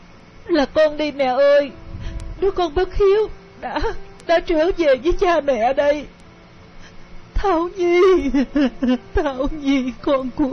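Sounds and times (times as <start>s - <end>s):
speech: 0.5s - 1.8s, 2.4s - 6.2s, 7.4s - 10.5s
mother and daughter crying in a hospital room: 3.0s - 4.0s, 7.4s - 10.5s.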